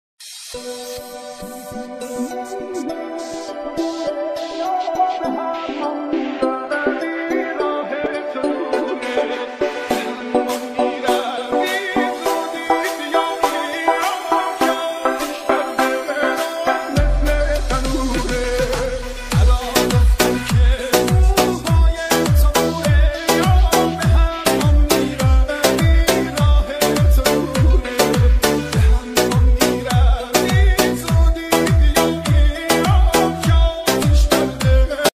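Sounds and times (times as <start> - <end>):
Arabic hit song ringtone: 0.4 - 35.1.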